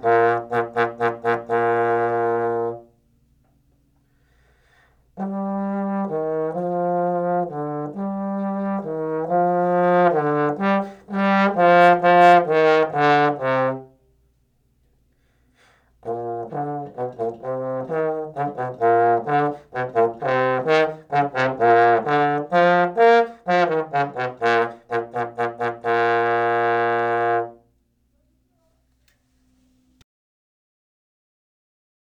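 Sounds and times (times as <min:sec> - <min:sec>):
baritone playing a minuet: 0:00.0 - 0:02.9, 0:05.2 - 0:14.0, 0:16.0 - 0:27.6.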